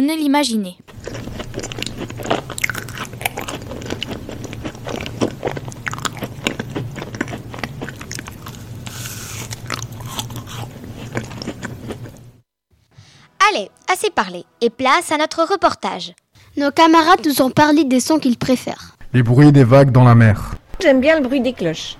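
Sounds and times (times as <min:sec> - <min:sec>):
speech: 0:00.0 - 0:00.9, 0:13.6 - 0:21.9
loud wet chewing and crunching of food: 0:00.9 - 0:12.4.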